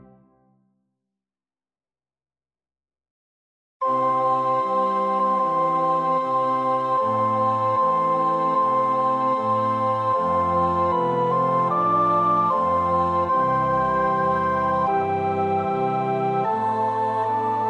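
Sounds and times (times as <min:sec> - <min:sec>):
alto voice practising a choir part: 0:03.8 - 0:17.6.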